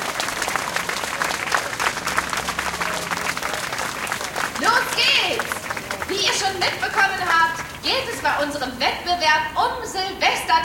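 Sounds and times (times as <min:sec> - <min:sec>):
audience applause for the teams: 0:00.0 - 0:08.3
speech: 0:06.6 - 0:10.6.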